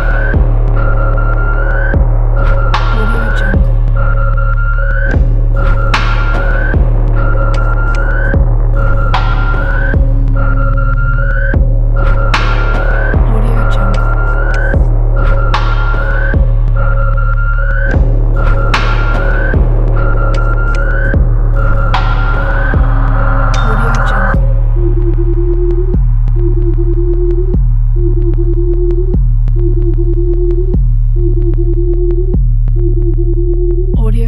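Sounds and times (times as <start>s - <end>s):
dark techno background music: 0.0s - 34.2s.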